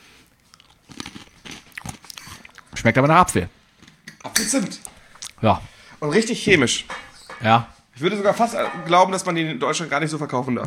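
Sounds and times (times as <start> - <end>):
crunchy chewing of Apple Jacks apple-cinnamon loop cereal: 0.0 - 2.8
speech: 2.8 - 3.6, 4.5 - 4.8, 5.4 - 10.6.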